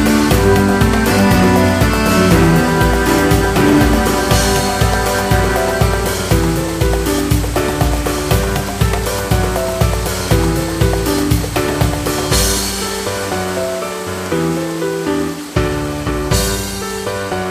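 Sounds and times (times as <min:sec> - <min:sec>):
cello: 0:00.0 - 0:08.0
piano: 0:00.0 - 0:17.4.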